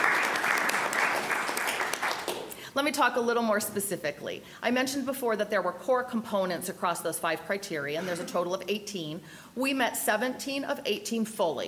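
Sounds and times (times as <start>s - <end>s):
audience applause at a university address: 0.0s - 2.5s
speech: 2.8s - 11.6s.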